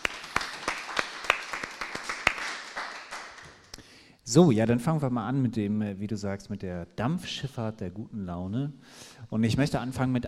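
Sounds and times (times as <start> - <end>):
audience applause: 0.0 - 3.7
speech: 4.3 - 10.2.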